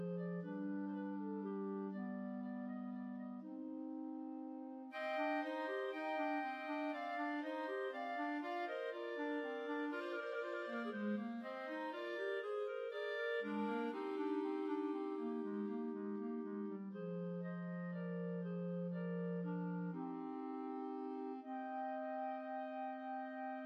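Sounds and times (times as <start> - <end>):
clarinet trio playing Spanish dances: 0.0 - 23.6.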